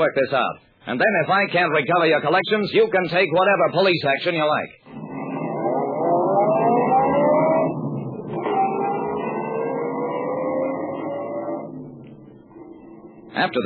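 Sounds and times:
speech: 0:00.0 - 0:04.8, 0:13.4 - 0:13.6
car engine driving off: 0:04.8 - 0:13.4.

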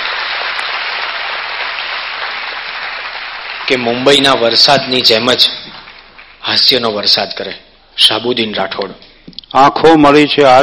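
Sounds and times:
audience applause at a comedy and humour event: 0:00.0 - 0:06.6
speech: 0:03.7 - 0:05.7, 0:06.5 - 0:10.6.

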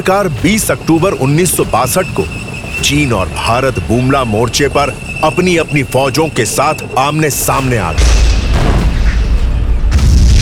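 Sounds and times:
speech: 0:00.0 - 0:08.3
mortars booming: 0:08.0 - 0:10.4.

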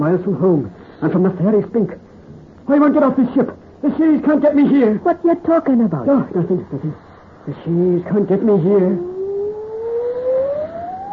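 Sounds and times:
speech: 0:00.0 - 0:02.1, 0:02.7 - 0:09.1
wailing wind: 0:08.4 - 0:11.1.

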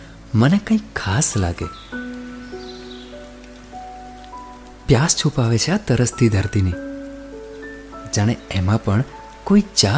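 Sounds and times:
steady rain falling: 0:00.0 - 0:09.9
speech: 0:00.3 - 0:01.9, 0:04.9 - 0:06.9, 0:08.1 - 0:09.9.

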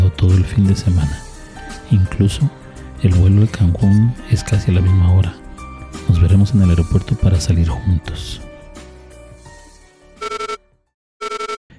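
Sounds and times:
speech: 0:00.2 - 0:05.4, 0:06.0 - 0:08.5
alarm clock ringing: 0:10.2 - 0:10.6, 0:11.2 - 0:11.6.

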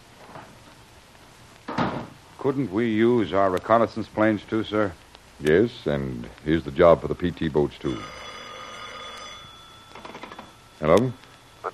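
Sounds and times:
speech: 0:02.4 - 0:08.2, 0:10.8 - 0:11.7
telephone ringing: 0:07.8 - 0:11.7.

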